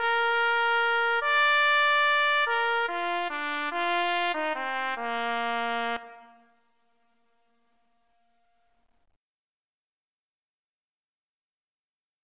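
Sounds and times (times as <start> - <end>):
trumpet and trombone duet: 0.0 - 7.4.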